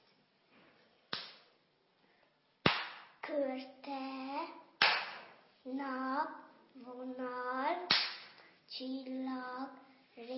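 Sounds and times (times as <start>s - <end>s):
single hand clap: 1.1s - 1.4s, 2.6s - 3.1s, 4.8s - 5.3s, 7.9s - 8.3s
speech: 3.3s - 4.6s, 5.6s - 8.0s, 8.7s - 10.3s.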